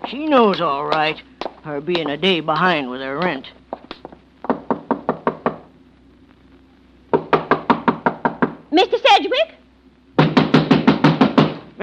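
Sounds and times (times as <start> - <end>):
speech: 0.1 - 3.6, 8.7 - 9.6
knuckles rapping on a wooden door: 4.4 - 5.6, 7.1 - 8.6, 10.2 - 11.7.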